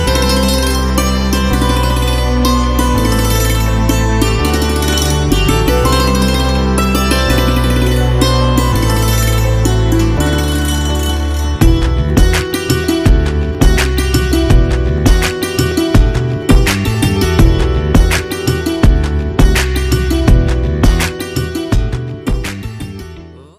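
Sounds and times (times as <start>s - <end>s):
instrumental music: 0.0s - 23.5s.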